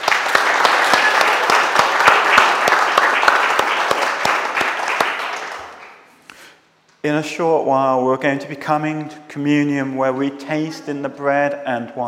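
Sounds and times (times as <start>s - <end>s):
audience applause: 0.0s - 6.1s
speech: 7.0s - 12.0s.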